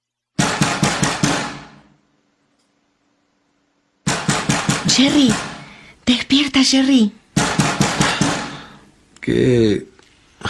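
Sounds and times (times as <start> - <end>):
knocking on a door: 0.4 - 1.8, 4.1 - 5.7, 7.4 - 8.6
speech: 4.9 - 5.5, 6.1 - 7.2, 9.2 - 10.4.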